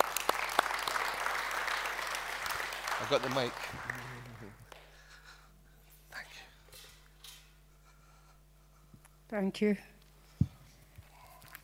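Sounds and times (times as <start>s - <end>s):
audience applause welcoming a woman speaker during a church sermon: 0.0s - 5.0s
speech: 3.0s - 4.0s, 9.3s - 9.9s.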